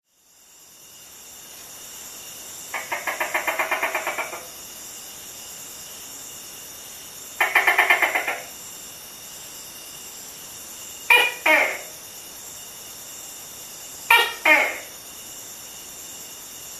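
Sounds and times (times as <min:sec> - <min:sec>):
male Tokay gecko Gekko gecko mating call: 0:02.7 - 0:04.6, 0:07.4 - 0:08.6, 0:11.1 - 0:12.1, 0:14.1 - 0:15.0.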